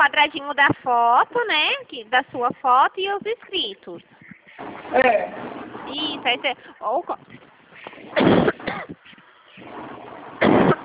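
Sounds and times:
speech: 0.0s - 7.4s, 8.1s - 9.0s
person coughing after choking on saliva: 8.1s - 9.0s, 10.4s - 10.8s.

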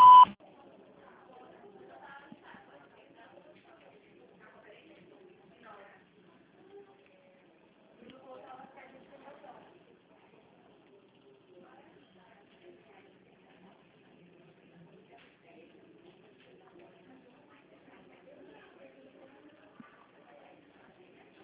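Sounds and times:
voicemail beep tone: 0.0s - 0.4s
faint indistinct voices: 0.0s - 21.4s.

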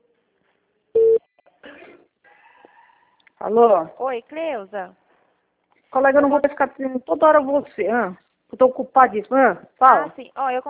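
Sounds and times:
short electronic beep of a telephone call being placed: 1.0s - 1.2s
speech: 3.4s - 5.0s, 5.9s - 10.6s.

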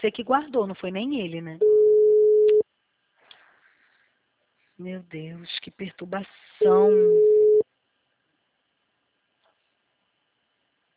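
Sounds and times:
speech: 0.0s - 1.8s, 4.8s - 7.4s
phone call ringing tone beep: 1.6s - 2.6s, 6.6s - 7.6s.

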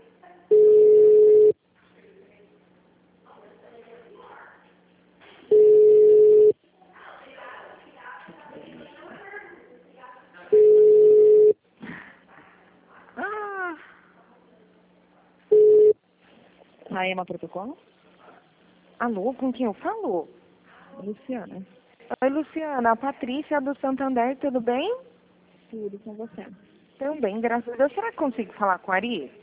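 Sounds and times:
telephone ringback beeps while a call to Saema is transferred: 0.5s - 1.6s, 5.5s - 6.5s, 10.6s - 11.6s, 15.5s - 16.0s
speech: 17.0s - 18.0s, 19.0s - 20.4s, 21.0s - 25.1s, 25.7s - 29.4s.

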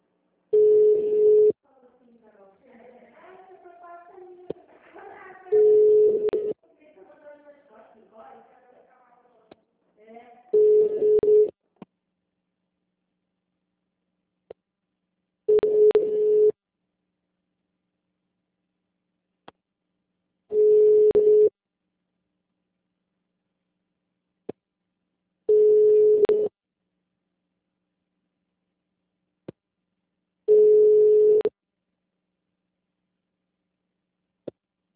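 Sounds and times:
telephone ringback tone on an unanswered call: 0.6s - 1.5s, 5.5s - 6.5s, 10.6s - 11.5s, 15.5s - 16.5s, 20.5s - 21.5s, 25.5s - 26.5s, 30.5s - 31.5s.

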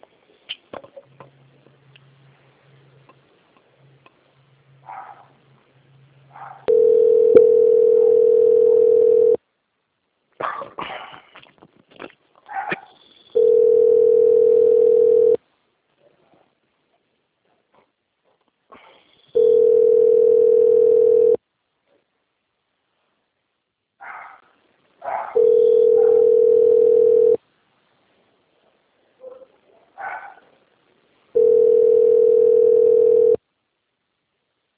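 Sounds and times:
telephone line tone while a call is transferred to a quality audit department: 6.7s - 9.4s, 13.4s - 15.4s, 19.4s - 21.4s, 25.4s - 27.4s, 31.4s - 33.4s.

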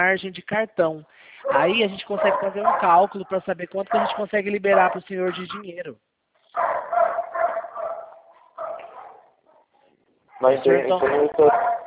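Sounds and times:
speech: 0.0s - 6.7s, 10.4s - 11.8s
dogs barking over a narrow tinny telephone line: 1.4s - 5.6s, 6.6s - 11.8s.

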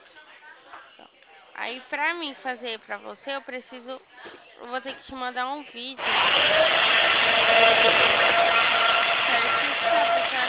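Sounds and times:
speech: 1.6s - 10.4s
electric drill whirring: 6.0s - 10.4s.

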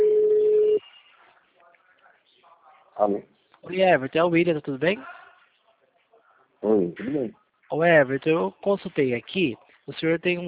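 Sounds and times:
telephone ringing tone while a call connects: 0.0s - 0.8s
speech: 3.0s - 5.2s, 6.6s - 10.4s.

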